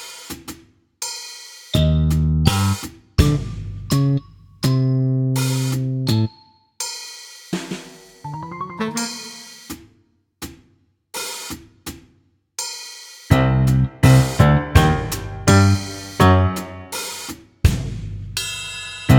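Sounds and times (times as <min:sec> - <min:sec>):
spy music loop: 0:01.8 - 0:06.5, 0:08.3 - 0:09.6, 0:13.3 - 0:17.2.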